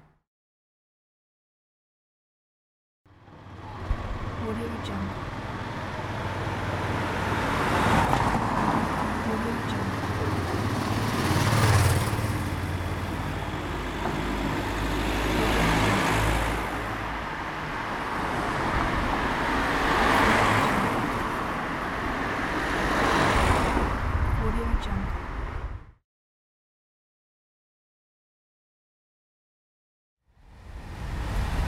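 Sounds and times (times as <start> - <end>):
car sounds: 3.1 - 25.6.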